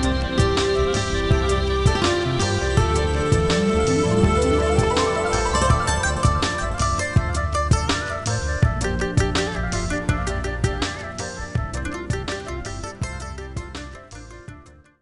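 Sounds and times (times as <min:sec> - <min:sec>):
chillout lounge ambient music: 0:00.0 - 0:14.9.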